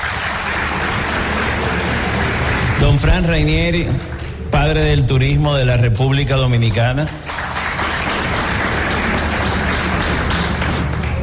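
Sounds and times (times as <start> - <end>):
audience applause: 0.0 - 4.5, 7.0 - 11.2
speech: 2.8 - 7.3.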